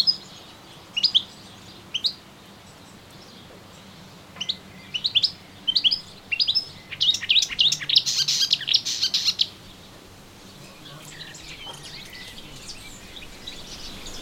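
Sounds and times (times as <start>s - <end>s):
melodious warbler twittering song: 0.0s - 14.2s.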